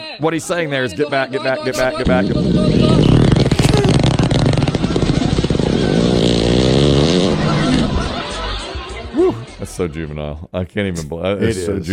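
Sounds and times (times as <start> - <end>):
speech: 0.2 - 3.2, 9.8 - 11.9
hippopotamus farting: 2.6 - 7.8
laughter: 3.5 - 9.9.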